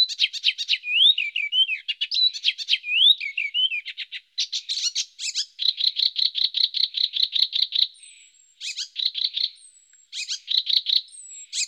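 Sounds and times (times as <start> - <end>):
Icterine warbler song of clicking notes and slurred whistle: 0.0 - 11.6.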